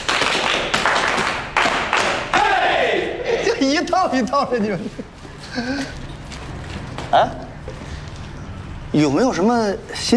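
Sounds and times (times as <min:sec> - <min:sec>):
group applauding: 0:00.0 - 0:03.2
laughter: 0:02.9 - 0:06.1
speech: 0:03.6 - 0:06.0, 0:07.1 - 0:07.4, 0:08.9 - 0:10.1.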